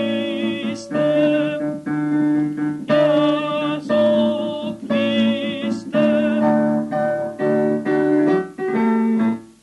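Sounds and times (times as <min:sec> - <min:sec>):
sopranos singing: 0:00.0 - 0:09.4.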